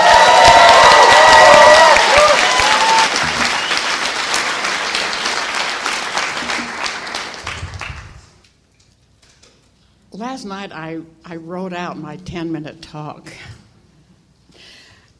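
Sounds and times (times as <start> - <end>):
audience applause at a Sunstone gathering: 0.0 - 8.2
speech: 10.6 - 13.5.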